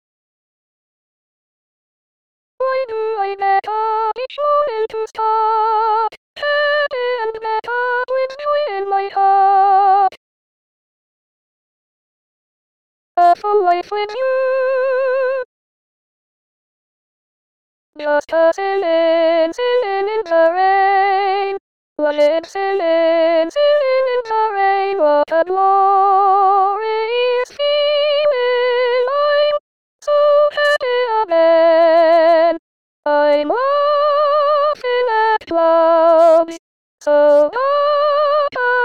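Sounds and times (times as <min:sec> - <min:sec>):
person singing: 0:02.6 - 0:10.2, 0:13.2 - 0:15.5, 0:18.0 - 0:38.8.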